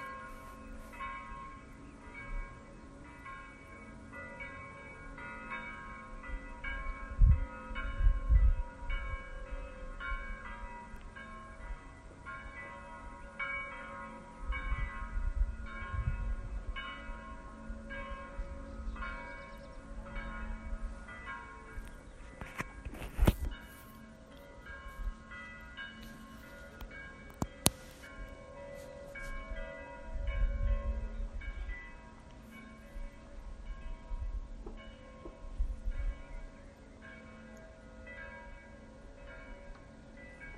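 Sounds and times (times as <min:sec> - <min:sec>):
bells: 0:00.0 - 0:40.5.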